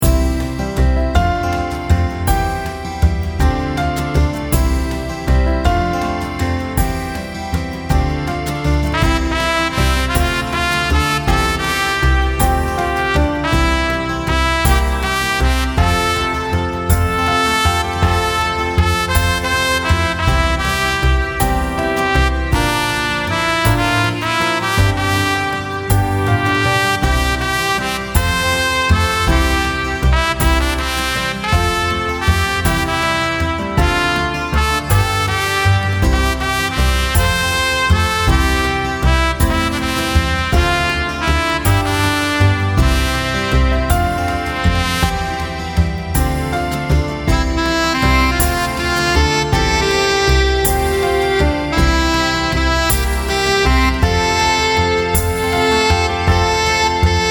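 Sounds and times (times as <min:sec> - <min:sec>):
backing music: 0:00.0 - 0:57.2.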